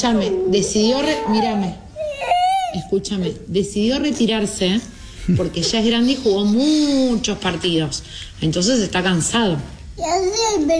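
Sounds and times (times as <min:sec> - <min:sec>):
speech: 0:00.0 - 0:01.8, 0:02.7 - 0:10.7
little girl crying with emotion: 0:00.9 - 0:02.9.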